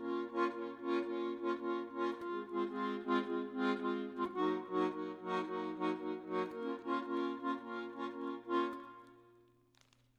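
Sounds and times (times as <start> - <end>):
accordion: 0.0 - 9.4.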